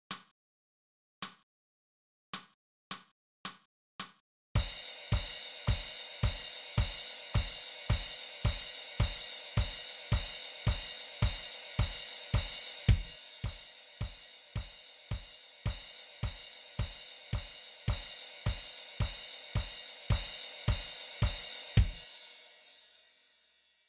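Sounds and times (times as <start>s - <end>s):
snare drum: 3.5s - 22.1s.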